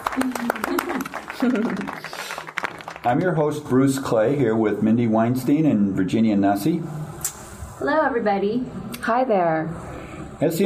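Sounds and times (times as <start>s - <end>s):
clapping hands sound effect: 0.0s - 3.5s
laughter: 0.1s - 2.3s
speech: 0.2s - 2.3s, 3.0s - 7.0s, 7.8s - 10.6s.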